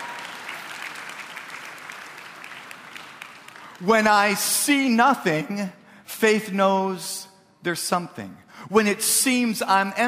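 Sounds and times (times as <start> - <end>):
audience applause: 0.0 - 4.4
speech: 3.8 - 10.0.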